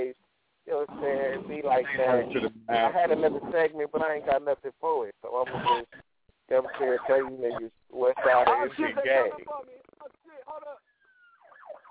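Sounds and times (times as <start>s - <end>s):
speech: 1.4s - 9.7s
ambulance siren passing outside: 6.6s - 8.8s, 10.8s - 11.8s.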